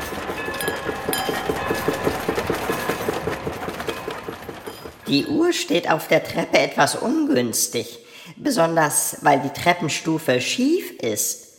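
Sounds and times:
train wheels clacking: 0:00.0 - 0:07.0
train passing: 0:00.0 - 0:07.4
speech: 0:05.1 - 0:11.4.

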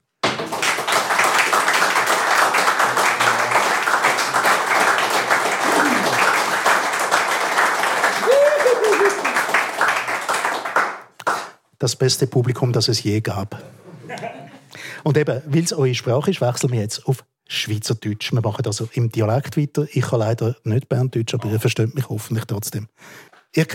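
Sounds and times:
audience applause for guests: 0:00.2 - 0:11.5
speech: 0:11.8 - 0:13.8, 0:15.0 - 0:23.7.

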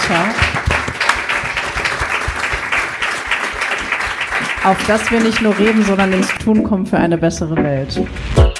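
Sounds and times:
audience applause: 0:00.0 - 0:06.4
speech: 0:00.1 - 0:00.4, 0:04.6 - 0:08.4.

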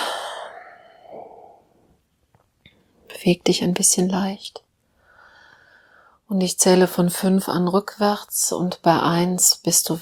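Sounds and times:
deep breathing in and out during a relaxation exercise: 0:00.0 - 0:02.0, 0:05.0 - 0:06.2
speech: 0:03.2 - 0:04.6, 0:06.3 - 0:10.0.

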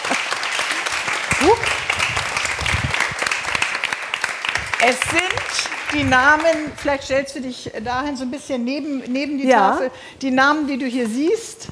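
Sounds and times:
crowd applauding: 0:00.0 - 0:06.9
speech: 0:01.4 - 0:01.8, 0:04.8 - 0:11.7.

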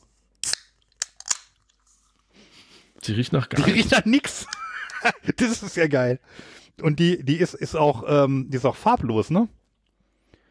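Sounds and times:
drink container being opened with crackling snaps: 0:00.4 - 0:01.6
speech: 0:03.1 - 0:09.6.

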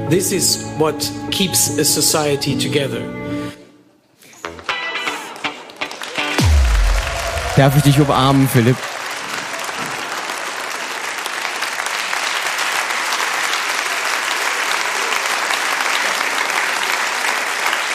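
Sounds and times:
speech: 0:00.1 - 0:03.5, 0:07.6 - 0:08.9
audience applause: 0:05.0 - 0:17.9.

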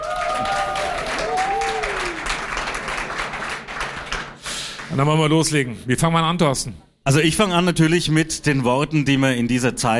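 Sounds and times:
audience applause for a men's choir at a festive Christmas event: 0:00.0 - 0:05.0
speech: 0:05.0 - 0:09.9.

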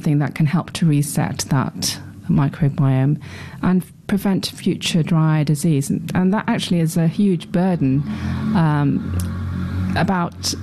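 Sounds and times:
speech: 0:00.0 - 0:09.4, 0:10.0 - 0:10.6
noisy motorbike passing: 0:07.0 - 0:10.6.

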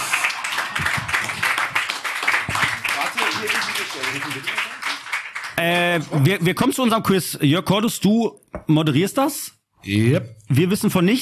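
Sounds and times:
audience applause: 0:00.0 - 0:06.3
speech: 0:03.4 - 0:04.7, 0:05.6 - 0:11.1.

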